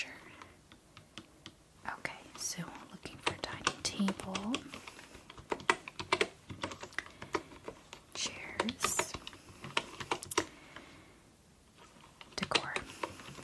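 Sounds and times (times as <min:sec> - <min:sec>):
soft voice speaking: 0:01.8 - 0:04.7, 0:08.2 - 0:09.2, 0:12.4 - 0:12.9
typing on a wooden keyboard: 0:02.3 - 0:10.8, 0:12.1 - 0:13.4
speech: 0:02.4 - 0:02.8, 0:04.0 - 0:04.8.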